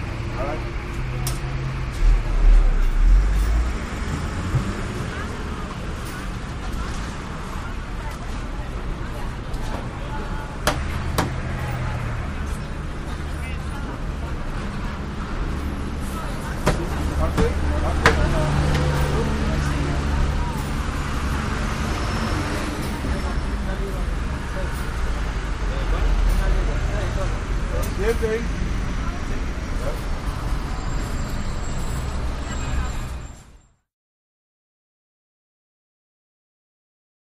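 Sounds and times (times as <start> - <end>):
street ambience: 0.0 - 33.9
light murmur of voices: 4.3 - 33.6.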